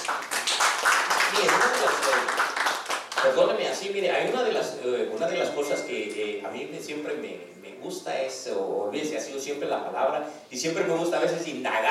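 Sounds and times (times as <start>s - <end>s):
audience applause: 0.0s - 3.3s
speech: 1.4s - 2.6s, 3.2s - 11.8s.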